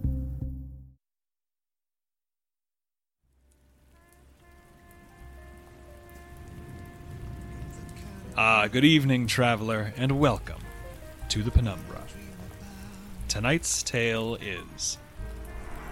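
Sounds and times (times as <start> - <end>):
storm rain: 3.3 - 15.9
speech: 8.4 - 10.7, 11.3 - 12.3, 13.3 - 15.0.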